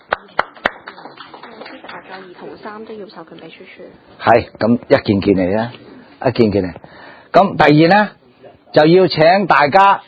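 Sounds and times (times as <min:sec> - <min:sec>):
applause to approve a motion: 0:00.0 - 0:02.7
speech: 0:02.2 - 0:10.0.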